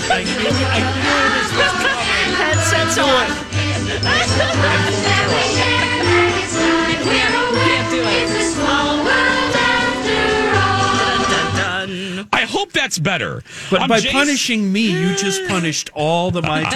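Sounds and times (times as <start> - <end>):
laughter: 0.0 - 12.3, 13.7 - 16.7
amusement park ride theme song: 0.0 - 12.4
speech: 0.2 - 1.7, 2.6 - 5.8, 12.7 - 16.7.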